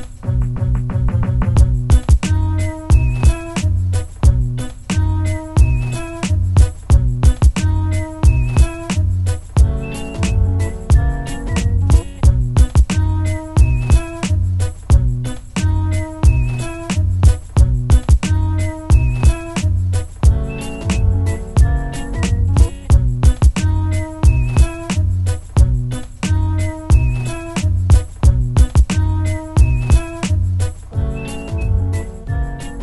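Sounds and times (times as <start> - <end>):
beats: 0.3 - 32.8.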